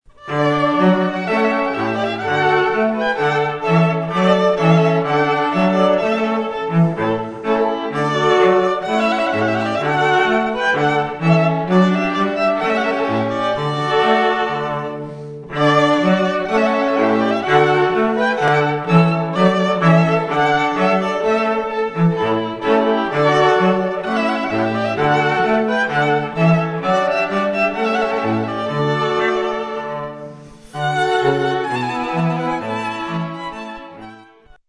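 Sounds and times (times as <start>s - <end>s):
trumpet piece: 0.1s - 34.6s.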